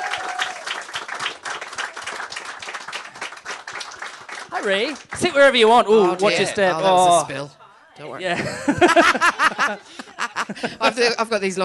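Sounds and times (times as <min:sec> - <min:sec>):
audience applause welcoming a comedian: 0:00.0 - 0:06.3
speech: 0:04.5 - 0:11.6
laughter: 0:08.2 - 0:11.2.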